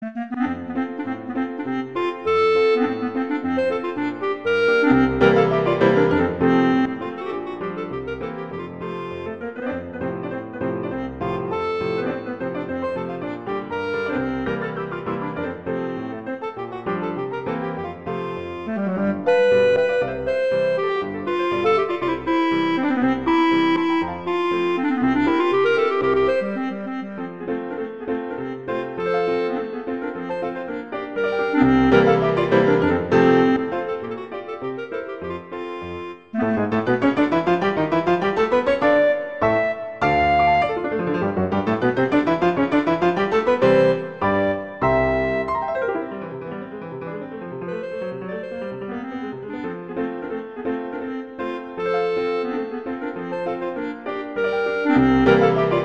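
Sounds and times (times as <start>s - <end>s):
violin playing allegretto: 0.0s - 55.8s.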